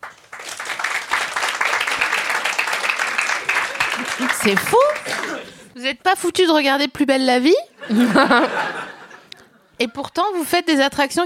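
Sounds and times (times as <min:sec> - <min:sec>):
audience applause: 0:00.0 - 0:05.6
laughter: 0:03.1 - 0:05.7, 0:07.8 - 0:09.9
speech: 0:04.2 - 0:08.8, 0:09.8 - 0:11.2.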